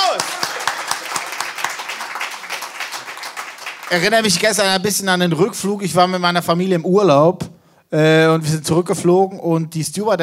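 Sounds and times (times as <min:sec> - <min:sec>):
live audience applause: 0:00.0 - 0:04.6
speech: 0:03.9 - 0:10.2.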